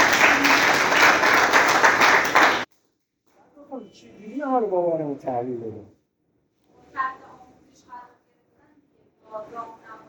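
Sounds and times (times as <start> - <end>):
group at an addiction recovery meeting applauding: 0.0 - 2.7
speech: 4.6 - 6.0.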